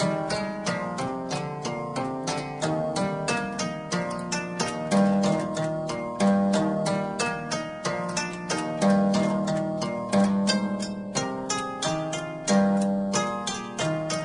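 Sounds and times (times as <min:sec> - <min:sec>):
guitar harpsichord: 0:00.0 - 0:14.2.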